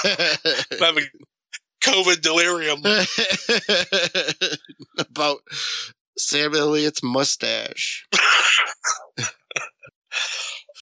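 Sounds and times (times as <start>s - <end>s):
laughter: 0.0s - 1.2s, 2.6s - 5.9s, 9.2s - 10.6s
speech: 0.0s - 1.3s, 1.9s - 10.6s
cough: 8.1s - 9.9s.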